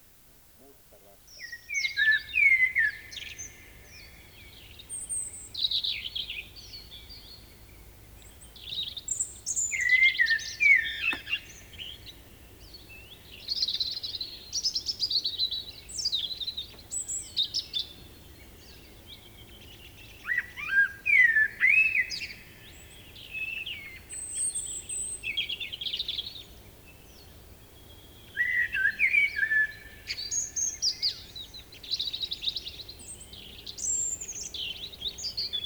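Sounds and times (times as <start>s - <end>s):
faint low hum: 0.0s - 1.7s
common blackbird singing: 0.6s - 7.7s, 8.4s - 35.6s.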